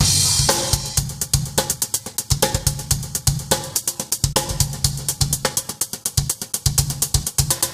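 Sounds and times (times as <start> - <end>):
old school breakbeat drums: 0.0 - 7.7.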